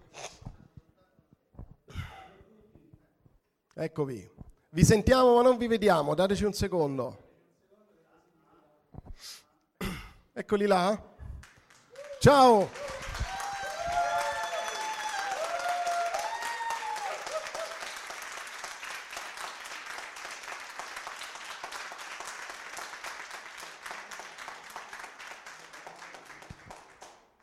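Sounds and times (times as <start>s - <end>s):
speech: 3.8s - 7.2s, 10.5s - 11.1s, 12.2s - 12.8s
crowd applauding: 11.3s - 27.4s
cheers and whoops: 11.9s - 18.0s.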